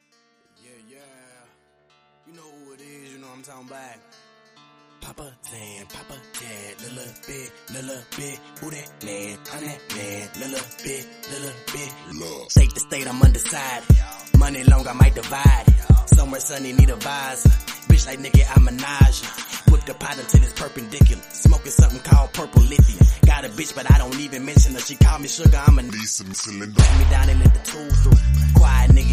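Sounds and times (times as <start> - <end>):
remix music: 5.9 - 29.1.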